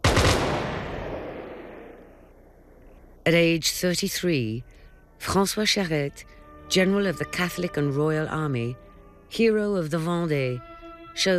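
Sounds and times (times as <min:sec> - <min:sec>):
firing squad volley: 0:00.0 - 0:02.0
speech: 0:03.3 - 0:11.3.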